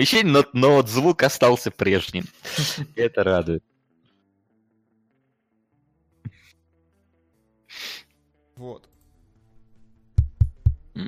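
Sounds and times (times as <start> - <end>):
speech: 0.0 - 3.7, 8.6 - 8.9
microphone tapping thumps: 10.2 - 10.9.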